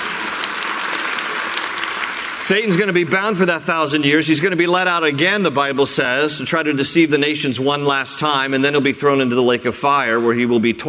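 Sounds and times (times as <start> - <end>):
audience applause: 0.0 - 3.5
speech: 2.4 - 10.8.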